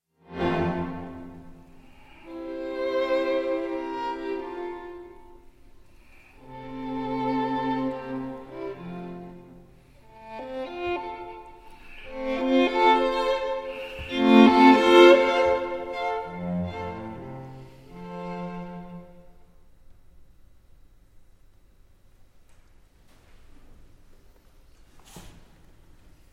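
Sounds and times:
string quartet in D minor: 0.2 - 19.5.

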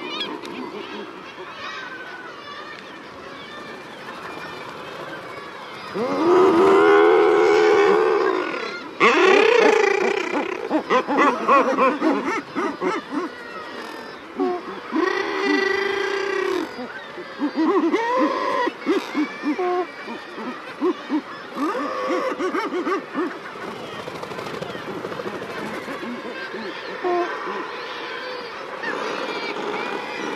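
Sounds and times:
common murre moaning growls: 3.3 - 30.3
laughter: 9.0 - 13.5.

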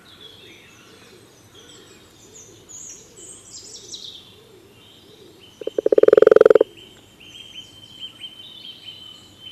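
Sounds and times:
common toad giving a rattling trill: 5.6 - 6.7.

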